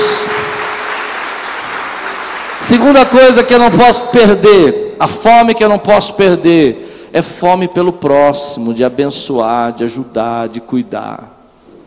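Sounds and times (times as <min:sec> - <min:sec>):
audience applauding: 0:00.0 - 0:03.0
speech: 0:02.7 - 0:11.3.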